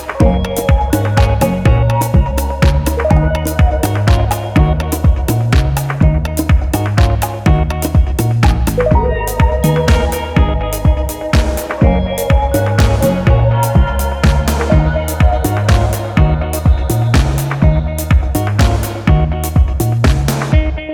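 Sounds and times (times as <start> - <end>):
contemporary music at 124 bpm in three-four time: 0.0 - 20.8.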